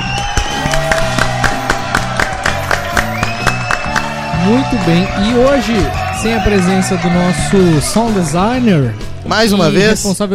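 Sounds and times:
applause: 0:00.0 - 0:07.0
speech: 0:04.4 - 0:10.3.

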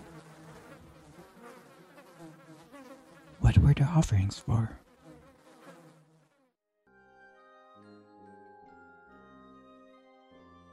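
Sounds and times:
flies buzzing over rotting food: 0:00.0 - 0:03.4, 0:04.3 - 0:06.6
speech: 0:03.5 - 0:04.8.

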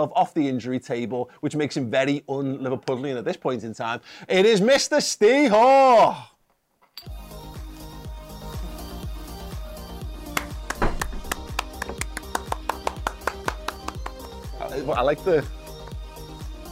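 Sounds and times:
speech: 0:00.0 - 0:06.3, 0:07.0 - 0:07.2, 0:14.8 - 0:15.6
one person clapping hands: 0:10.3 - 0:14.5.

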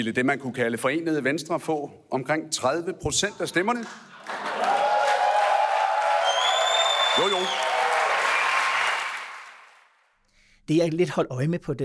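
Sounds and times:
speech: 0:00.0 - 0:04.4, 0:07.2 - 0:07.6, 0:10.7 - 0:11.8
crowd applause at election night event: 0:04.2 - 0:10.0.

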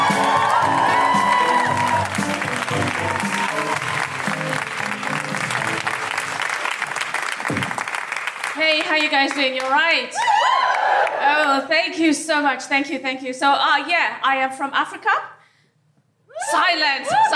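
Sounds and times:
cheers and whoops: 0:00.0 - 0:04.6, 0:10.1 - 0:11.4, 0:16.3 - 0:17.3
stand-up comedy audience applause at the Edinburgh Fringe: 0:00.0 - 0:11.3
speech: 0:09.0 - 0:10.3, 0:11.6 - 0:15.3, 0:16.7 - 0:17.3.

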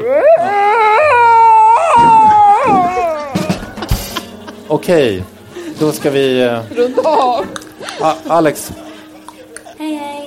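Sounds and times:
person imitating a cat in heat: 0:00.0 - 0:03.5
laughter: 0:02.8 - 0:09.8
speech: 0:04.7 - 0:08.8.

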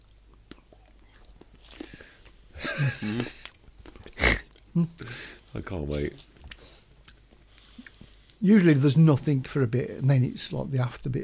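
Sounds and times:
biting and chewing mild chilli chocolate: 0:00.0 - 0:02.4, 0:03.1 - 0:05.0, 0:06.1 - 0:08.4
speech: 0:02.8 - 0:03.4, 0:04.8 - 0:06.3, 0:08.4 - 0:11.2.

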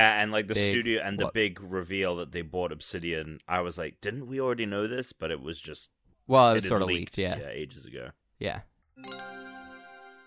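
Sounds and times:
speech: 0:00.0 - 0:09.4
podcast listener mail chiming jingle: 0:09.0 - 0:10.2.

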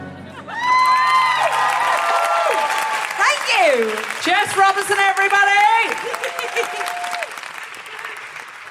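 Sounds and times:
audience applause: 0:00.4 - 0:08.6.

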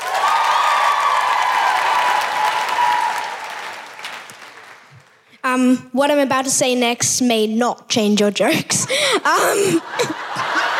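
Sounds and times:
audience applause: 0:00.0 - 0:05.2
speech: 0:05.6 - 0:10.2
laughter: 0:09.3 - 0:10.7.

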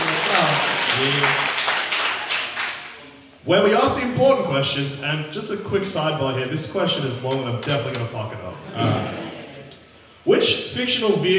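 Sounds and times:
audience applause: 0:00.0 - 0:03.0
speech: 0:00.5 - 0:01.5, 0:03.4 - 0:09.3, 0:10.2 - 0:11.3.

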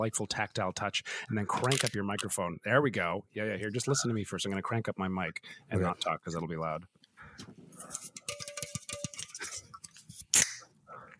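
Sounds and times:
speech: 0:00.0 - 0:08.0
plastic water bottle cap opening hiss: 0:10.2 - 0:10.7.

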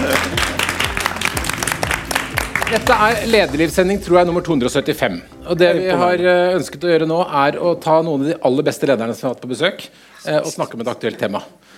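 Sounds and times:
audience applause: 0:00.0 - 0:03.4
low thumping beat: 0:00.0 - 0:07.6
speech: 0:02.7 - 0:11.7.

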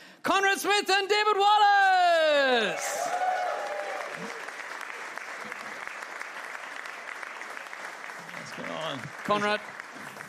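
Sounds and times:
speech: 0:00.2 - 0:03.3, 0:08.9 - 0:09.7
audience applause welcoming two rugby guests onto a live rugby show: 0:02.6 - 0:10.2.

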